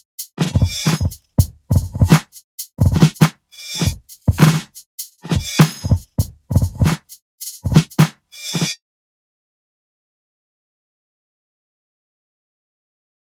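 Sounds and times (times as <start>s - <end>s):
acoustic drums: 0.0s - 8.7s.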